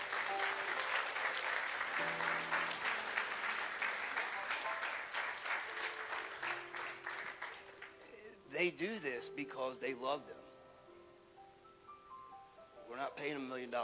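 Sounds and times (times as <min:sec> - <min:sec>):
audience applause: 0:00.0 - 0:08.0
speech: 0:02.0 - 0:02.6, 0:08.6 - 0:10.4, 0:13.2 - 0:13.8.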